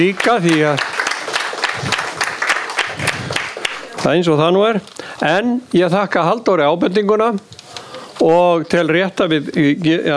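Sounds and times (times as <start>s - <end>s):
speech: 0.0s - 0.9s, 4.0s - 7.6s, 8.2s - 10.1s
audience applause for four people at a meeting: 0.0s - 4.1s.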